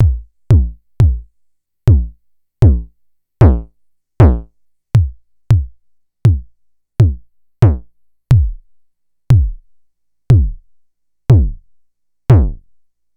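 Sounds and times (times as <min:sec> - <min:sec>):
Vermona DRM1-MK2 kick drums: 0:00.0 - 0:01.3, 0:01.9 - 0:08.7, 0:09.3 - 0:09.7, 0:10.3 - 0:10.7, 0:11.3 - 0:11.7, 0:12.3 - 0:12.7.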